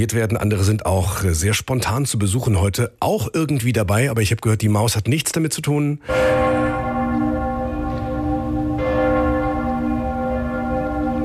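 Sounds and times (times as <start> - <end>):
speech: 0.0 - 7.2
church bells of Cologne Cathedral ringing: 6.0 - 11.2.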